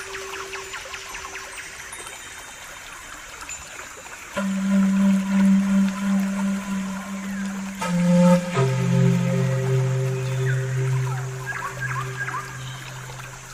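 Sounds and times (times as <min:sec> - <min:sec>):
soft steady water trickle: 0:00.0 - 0:13.5
pan flute melodies: 0:04.4 - 0:13.5.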